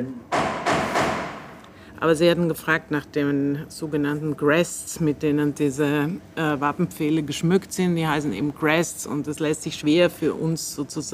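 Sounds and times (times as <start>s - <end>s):
speech: 0.0s - 0.2s, 2.0s - 11.1s
hammering: 0.3s - 1.7s.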